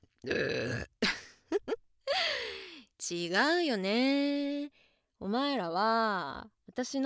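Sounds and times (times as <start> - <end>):
speech: 0.2 - 0.8, 3.1 - 7.0
woman burping: 0.2 - 1.2.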